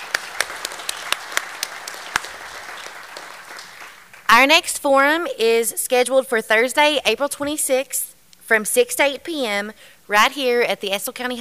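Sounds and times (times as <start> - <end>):
audience applause: 0.0 - 4.3
speech: 4.3 - 11.4.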